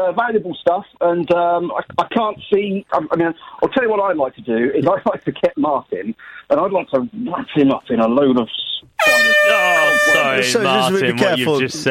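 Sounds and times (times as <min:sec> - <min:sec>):
speech: 0:00.0 - 0:11.8
air horn used as profanity buzzer: 0:09.0 - 0:10.9.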